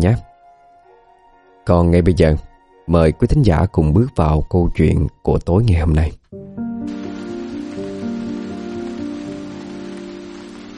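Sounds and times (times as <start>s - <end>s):
speech: 0.0s - 0.3s, 1.6s - 7.0s
heavy rain pouring at night on a poor hamlet in U Minh: 6.8s - 10.7s.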